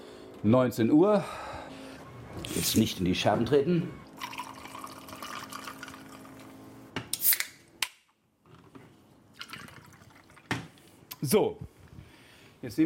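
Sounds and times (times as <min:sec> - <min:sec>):
speech: 0:00.4 - 0:01.5, 0:02.4 - 0:04.0, 0:11.2 - 0:11.7, 0:12.6 - 0:12.8
evening drink poured into a glass: 0:04.1 - 0:06.6, 0:09.3 - 0:10.6.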